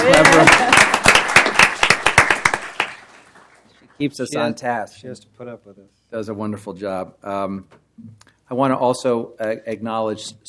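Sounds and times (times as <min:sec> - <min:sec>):
audience applause: 0:00.0 - 0:03.7
speech: 0:04.0 - 0:10.4.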